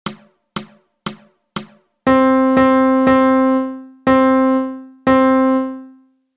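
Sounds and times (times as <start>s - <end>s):
melody: 2.1s - 6.2s.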